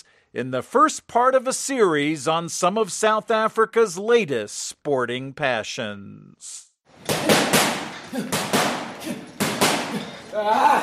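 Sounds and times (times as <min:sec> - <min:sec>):
speech: 0:00.3 - 0:09.2, 0:10.4 - 0:10.8
boxer punching a punching bag: 0:07.1 - 0:10.1.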